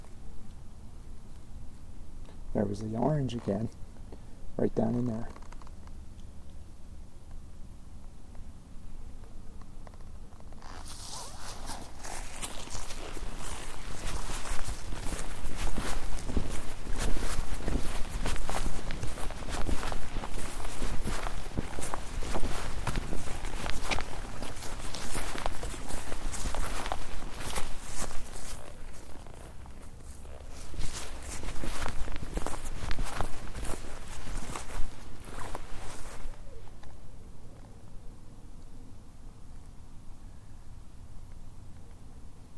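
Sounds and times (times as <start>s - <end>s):
speech: 2.6s - 3.9s, 4.6s - 5.4s
footsteps walking among trees: 10.4s - 37.1s.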